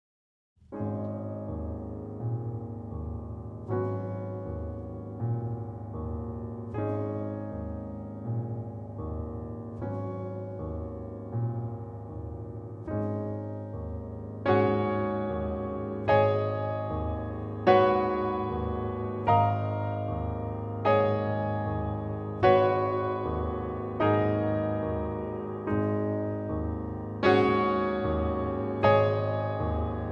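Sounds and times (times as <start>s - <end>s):
piano: 0.6s - 30.1s.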